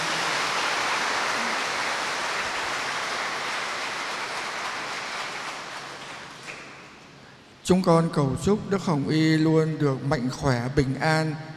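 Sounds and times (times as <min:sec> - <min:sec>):
audience applause: 0:00.0 - 0:06.8
speech: 0:07.7 - 0:11.5.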